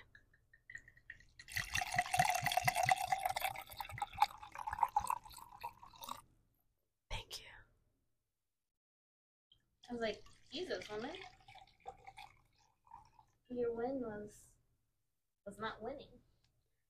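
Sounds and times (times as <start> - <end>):
drink being poured: 0.0 - 6.3, 10.1 - 13.4
speech: 10.0 - 11.4, 13.5 - 14.5, 15.5 - 16.2.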